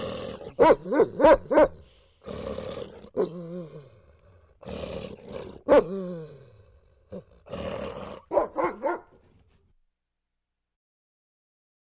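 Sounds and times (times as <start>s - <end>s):
dog growling: 0.0s - 9.2s
dog barking: 0.5s - 1.9s, 5.5s - 6.0s, 8.2s - 9.2s.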